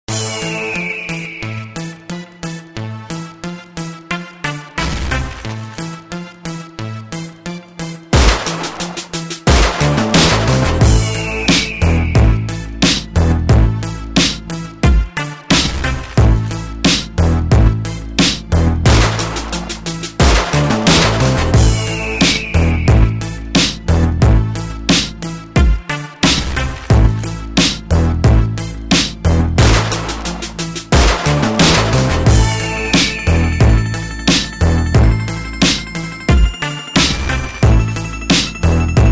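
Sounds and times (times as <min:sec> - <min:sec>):
music beat: 0:00.1 - 0:02.1, 0:08.2 - 0:39.1.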